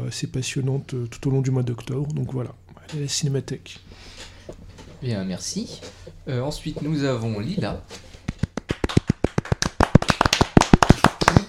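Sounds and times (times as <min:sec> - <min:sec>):
speech: 0:00.1 - 0:08.1
small group applauding: 0:08.5 - 0:11.4.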